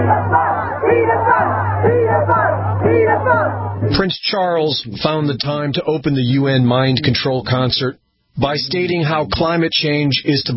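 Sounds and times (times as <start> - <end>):
crowd of protesters chanting outside Buckingham Palace: 0.0 - 4.1
low hum: 0.0 - 9.4
speech: 3.5 - 10.5.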